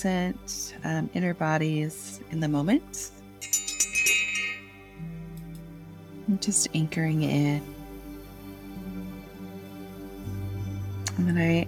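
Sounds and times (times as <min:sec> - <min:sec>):
speech: 0:00.0 - 0:03.2, 0:06.3 - 0:07.8, 0:11.2 - 0:11.6
small bell struck, bright high-pitched tone: 0:03.4 - 0:05.1.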